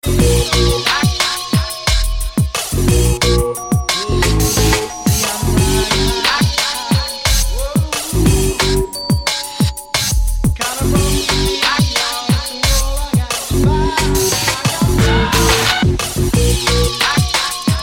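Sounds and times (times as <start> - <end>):
drum and bass music: 0.0 - 17.8.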